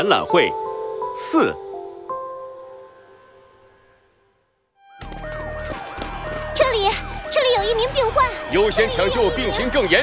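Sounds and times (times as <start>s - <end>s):
speech: 0.0s - 0.6s, 1.2s - 1.6s, 7.8s - 10.0s
electronic tone: 1.9s - 4.5s
ambulance sirens wailing: 5.1s - 10.0s.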